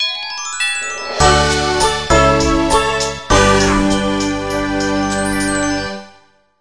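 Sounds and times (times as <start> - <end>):
background music: 0.0 - 6.4.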